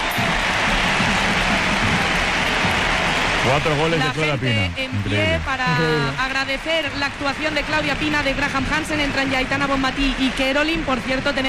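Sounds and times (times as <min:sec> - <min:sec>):
stadium crowd ovation: 0:00.0 - 0:11.4
speech: 0:03.4 - 0:11.4.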